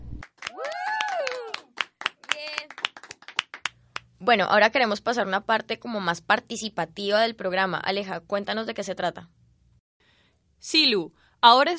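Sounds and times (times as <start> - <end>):
audience applause: 0.2 - 3.7
speech: 4.2 - 9.4, 10.6 - 11.7.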